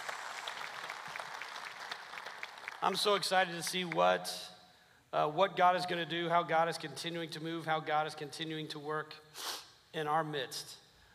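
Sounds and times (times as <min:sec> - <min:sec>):
church congregation applause welcoming a woman into a ministry role: 0:00.0 - 0:03.2
speech: 0:02.8 - 0:04.5, 0:05.1 - 0:10.8.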